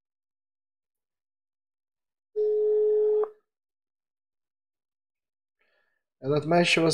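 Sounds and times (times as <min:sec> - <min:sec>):
telephone line tone: 0:02.4 - 0:03.4
speech: 0:06.2 - 0:06.9.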